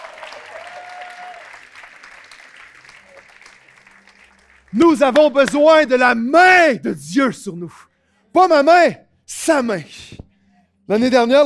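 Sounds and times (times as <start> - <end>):
audience applause: 0.0 - 5.4
speech: 4.7 - 10.0, 10.9 - 11.4.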